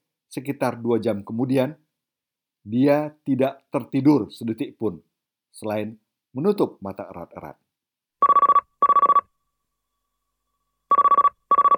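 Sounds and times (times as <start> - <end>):
speech: 0.3 - 1.8, 2.6 - 7.6
mobile phone ringing: 8.2 - 9.3, 10.9 - 11.7.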